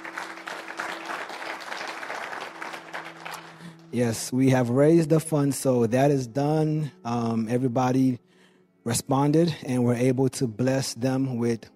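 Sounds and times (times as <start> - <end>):
crowd applauding: 0.0 - 3.9
speech: 3.9 - 11.7.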